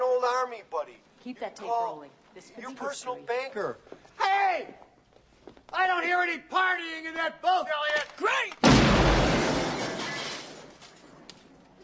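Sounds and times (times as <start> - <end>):
speech: 0.2 - 4.8, 5.7 - 8.9
window glass smashing: 8.6 - 11.2.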